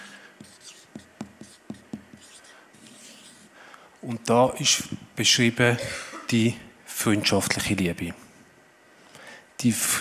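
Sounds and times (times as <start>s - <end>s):
pen strokes scratching across paper: 0.0s - 3.5s
soft noise: 0.0s - 10.0s
speech: 4.0s - 8.2s, 9.6s - 10.0s.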